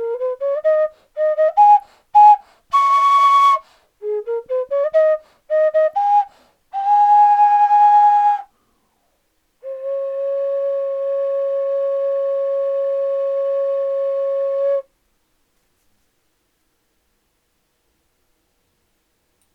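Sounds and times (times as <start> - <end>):
music: 0.0 - 8.5, 9.6 - 14.9.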